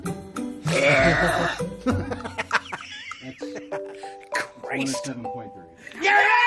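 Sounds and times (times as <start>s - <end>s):
world-record-breaking long deep burp: 0.6s - 1.7s
vocal noises: 0.6s - 1.8s
speech: 0.7s - 2.0s, 4.8s - 6.3s
laughter: 0.7s - 4.6s.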